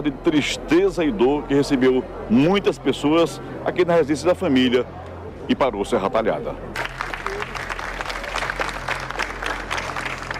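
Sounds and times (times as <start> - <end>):
speech: 0.0 - 6.9
people applauding a funeral procession: 6.8 - 10.3.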